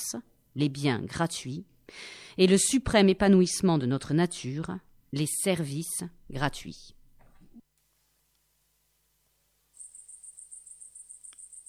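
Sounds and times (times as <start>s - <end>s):
speech: 0.0s - 7.0s
crickets chirping: 9.7s - 11.6s.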